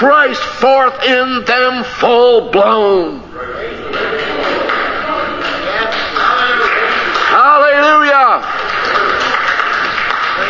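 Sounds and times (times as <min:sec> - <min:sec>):
speech: 0:00.0 - 0:04.0
audience applause after preaching: 0:04.3 - 0:10.4.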